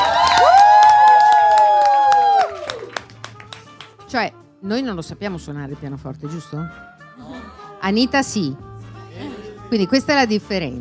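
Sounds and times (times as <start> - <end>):
audience applause and cheering: 0.0 - 4.0
speech: 4.1 - 10.7.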